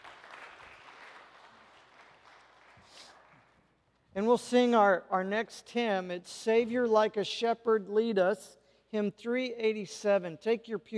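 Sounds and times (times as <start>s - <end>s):
audience applause: 0.0s - 3.4s
speech: 4.2s - 10.9s.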